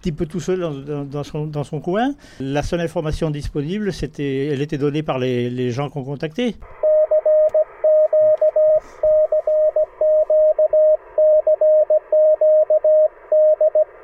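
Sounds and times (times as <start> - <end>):
speech: 0.0 - 6.8
morse code beeps from amateur radio: 6.8 - 14.0.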